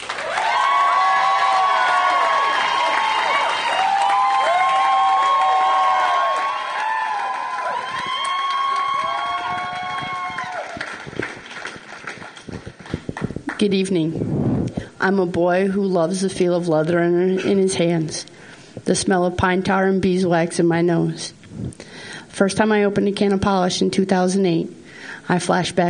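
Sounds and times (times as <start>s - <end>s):
audience applause: 0.0s - 13.4s
speech: 13.6s - 21.4s, 22.4s - 25.8s.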